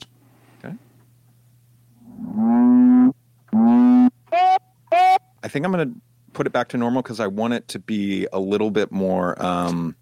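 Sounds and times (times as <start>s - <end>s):
speech: 0.6s - 0.9s, 5.5s - 10.0s
honk played in reverse: 2.4s - 5.2s.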